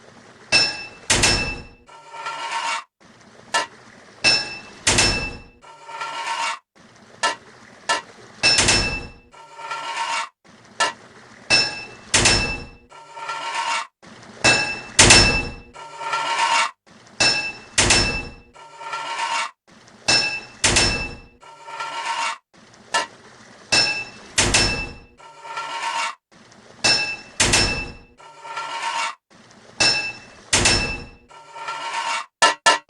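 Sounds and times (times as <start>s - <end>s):
hammer striking metal pipes: 0.5s - 2.7s, 3.5s - 6.5s, 7.2s - 9.9s, 10.8s - 13.6s, 14.4s - 19.3s, 20.0s - 22.0s, 22.9s - 25.9s, 26.8s - 29.0s, 29.8s - 32.8s.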